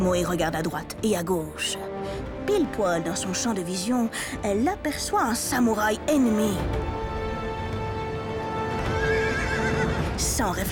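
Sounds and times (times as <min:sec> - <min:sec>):
speech: 0:00.0 - 0:07.0, 0:10.3 - 0:10.7
sustained tonal backdrop: 0:00.0 - 0:10.7
horse hooves galloping: 0:07.6 - 0:10.6
horse whinnying: 0:08.7 - 0:10.1.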